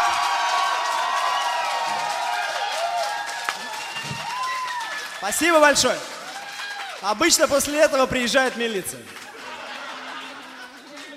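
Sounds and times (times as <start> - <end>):
audience clapping: 0.0 - 11.1
speech: 5.2 - 6.1, 7.0 - 9.2
laughter: 9.3 - 11.1.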